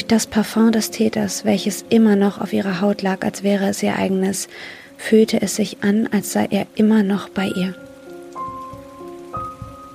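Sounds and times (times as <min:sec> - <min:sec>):
speech: 0:00.0 - 0:07.9
running shower water: 0:03.6 - 0:09.9
soft low thuds: 0:08.4 - 0:09.9.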